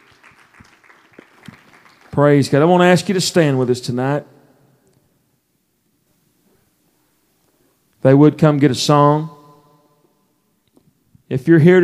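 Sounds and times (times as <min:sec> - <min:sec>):
audience hand clapping: 0:00.0 - 0:02.7
speech: 0:02.2 - 0:04.4, 0:08.0 - 0:09.4, 0:11.3 - 0:11.8.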